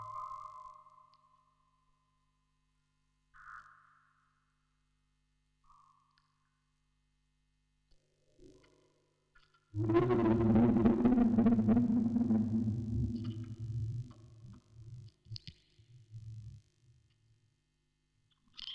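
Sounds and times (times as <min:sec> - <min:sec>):
vocoder recording: 0:09.8 - 0:14.2.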